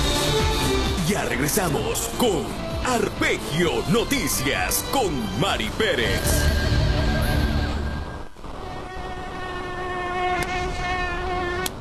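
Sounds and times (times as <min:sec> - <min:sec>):
speech: 0:01.1 - 0:06.8
mosquitoes buzzing: 0:06.4 - 0:11.7.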